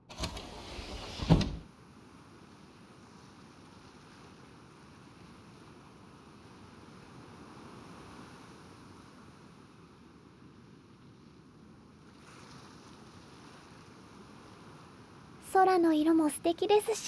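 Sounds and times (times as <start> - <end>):
window sliding open with a soft mechanical rumble: 0.0 - 1.7
speech: 15.5 - 17.0.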